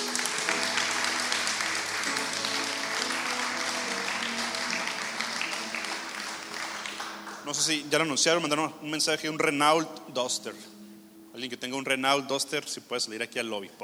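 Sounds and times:
audience applauding: 0:00.0 - 0:08.7
faint musical tone: 0:00.0 - 0:13.8
speech: 0:07.5 - 0:10.7, 0:11.4 - 0:13.8.

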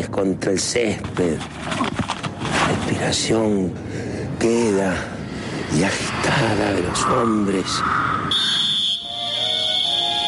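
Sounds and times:
speech: 0:00.2 - 0:01.9, 0:02.7 - 0:05.1, 0:05.7 - 0:08.6
referee's whistle: 0:08.3 - 0:10.2.

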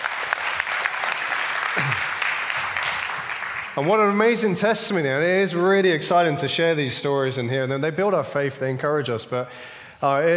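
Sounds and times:
crowd applause: 0:00.0 - 0:03.9
speech: 0:03.8 - 0:10.3.

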